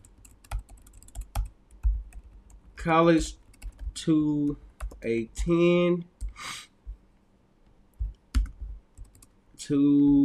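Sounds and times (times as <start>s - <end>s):
fingers typing on a computer keyboard: 0.0s - 2.8s, 3.4s - 5.6s, 8.0s - 9.3s
speech: 2.8s - 3.4s, 4.0s - 6.5s, 9.7s - 10.2s.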